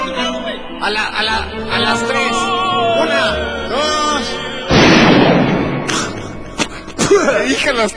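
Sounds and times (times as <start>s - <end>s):
speech: 0.8s - 4.5s, 7.2s - 7.9s
gunshot blast: 4.7s - 6.2s.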